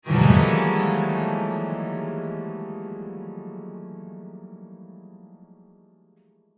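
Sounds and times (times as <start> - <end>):
piano flail: 0.0 - 2.0.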